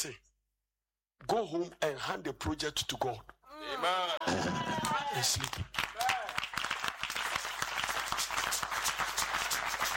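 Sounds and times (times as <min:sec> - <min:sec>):
speech: 0:00.0 - 0:00.2, 0:01.2 - 0:06.0
audience clapping: 0:04.6 - 0:09.9.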